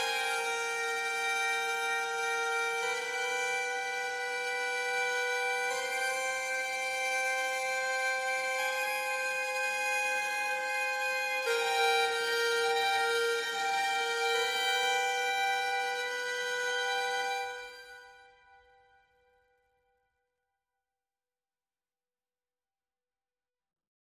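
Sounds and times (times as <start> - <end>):
instrument harmonics: 0.0 - 18.8.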